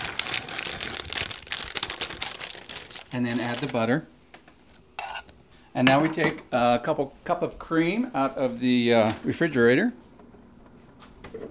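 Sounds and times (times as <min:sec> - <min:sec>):
chocolate chunks poured into a bowl: 0:00.0 - 0:03.8
speech: 0:03.1 - 0:04.2, 0:05.8 - 0:10.0.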